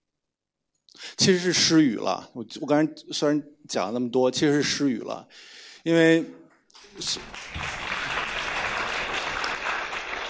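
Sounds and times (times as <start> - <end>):
speech: 1.2 - 7.7
audience applause: 6.8 - 10.2.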